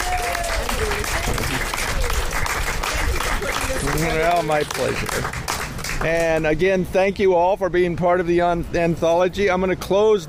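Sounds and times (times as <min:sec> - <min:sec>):
audience applause: 0:00.0 - 0:06.4
speech: 0:04.4 - 0:05.4, 0:06.0 - 0:10.2.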